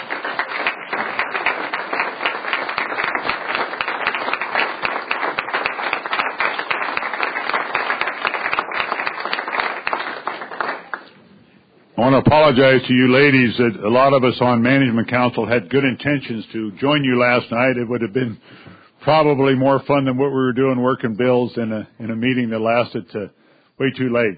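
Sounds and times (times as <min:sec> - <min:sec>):
audience applause at a conference dinner: 0:00.0 - 0:11.1
speech: 0:12.0 - 0:24.3.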